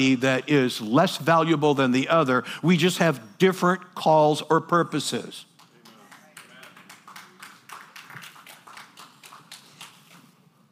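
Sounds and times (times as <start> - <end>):
speech: 0.0 - 5.5
audience clapping: 5.5 - 10.4.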